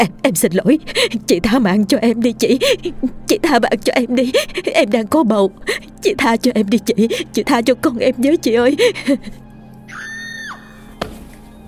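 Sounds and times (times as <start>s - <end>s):
speech: 0.0s - 9.4s
low steady hum: 0.0s - 9.9s
woman screaming in fear: 9.9s - 10.8s.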